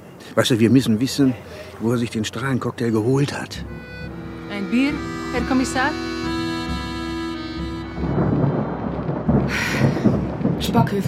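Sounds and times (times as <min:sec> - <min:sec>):
rain: 0:00.0 - 0:11.0
speech: 0:00.4 - 0:03.9, 0:04.6 - 0:06.1, 0:10.8 - 0:11.0
storm wind: 0:02.8 - 0:11.0.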